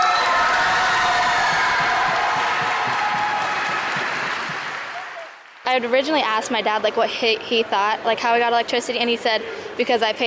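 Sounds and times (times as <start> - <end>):
students cheering in school gym: 0.0 - 5.4
speech: 5.8 - 10.2.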